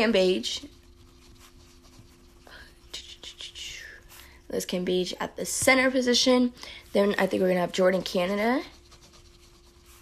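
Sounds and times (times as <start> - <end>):
speech: 0.0 - 0.8, 4.5 - 8.8
pen scratching on paper writing a basketball starting lineup: 0.0 - 3.4, 7.0 - 10.0
steady low hum: 0.0 - 10.0.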